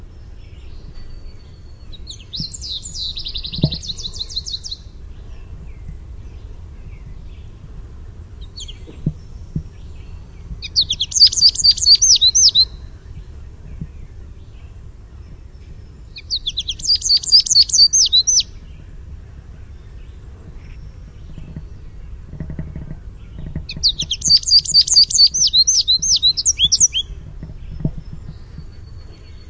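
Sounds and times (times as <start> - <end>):
low rumble: 0.0 - 29.4
American goldfinch contact song: 2.1 - 4.8, 9.7 - 12.8, 16.2 - 18.6, 22.7 - 29.4
soft thumps: 3.4 - 4.7, 20.4 - 24.1, 27.2 - 28.7.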